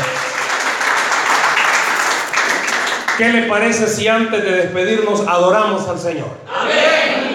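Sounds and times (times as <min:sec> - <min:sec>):
audience applause: 0:00.0 - 0:03.2
speech: 0:03.2 - 0:06.9.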